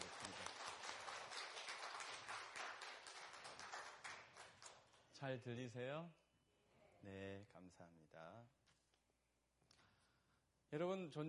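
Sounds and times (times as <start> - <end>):
audience applause: 0.0 - 4.6
speech: 5.2 - 6.2, 7.0 - 8.6, 10.7 - 11.2.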